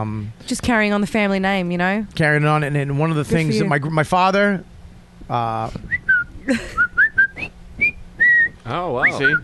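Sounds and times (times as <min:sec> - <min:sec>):
speech: 0:00.0 - 0:04.7, 0:05.3 - 0:06.9, 0:08.7 - 0:09.4
person whistling a short melodic tune: 0:05.9 - 0:09.4.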